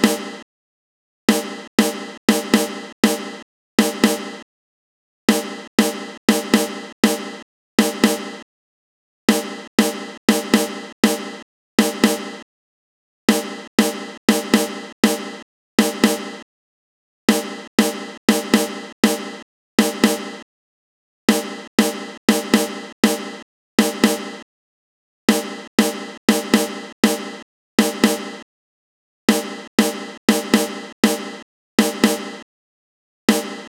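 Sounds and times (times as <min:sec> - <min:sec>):
snare drum: 0:00.0 - 0:00.4, 0:01.3 - 0:04.4, 0:05.3 - 0:08.4, 0:09.3 - 0:12.4, 0:13.3 - 0:16.4, 0:17.3 - 0:20.4, 0:21.3 - 0:24.4, 0:25.3 - 0:28.4, 0:29.3 - 0:32.4, 0:33.3 - 0:33.6.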